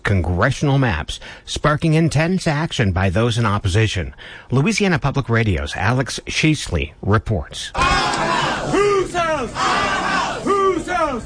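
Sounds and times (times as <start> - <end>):
speech: 0.1 - 11.2
protest crowd chanting in Senate lobby: 7.8 - 11.2.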